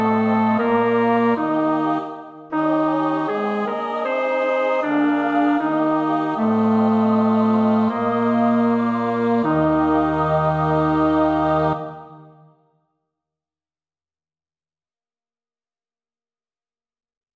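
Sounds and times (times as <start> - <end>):
bass choir part practice: 0.0 - 12.4.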